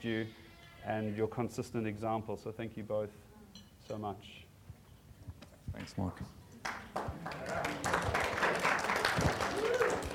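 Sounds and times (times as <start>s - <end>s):
speech: 0.0s - 3.3s, 3.9s - 4.4s, 5.7s - 8.0s
audience clapping: 6.6s - 10.1s.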